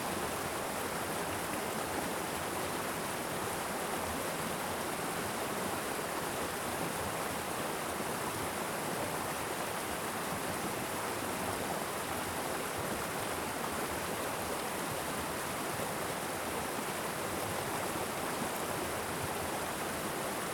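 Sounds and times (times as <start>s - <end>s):
small waterfall in a Vermont creek: 0.0s - 20.5s.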